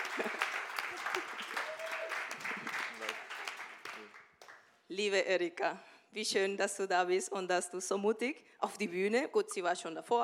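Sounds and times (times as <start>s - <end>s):
laughter: 0.0s - 3.5s
audience applause: 0.0s - 4.6s
speech: 0.2s - 0.5s, 5.0s - 10.2s.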